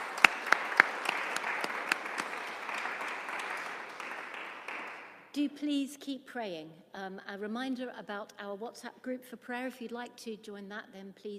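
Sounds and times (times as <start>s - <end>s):
round of applause from a group: 0.0s - 5.3s
speech: 5.4s - 11.3s.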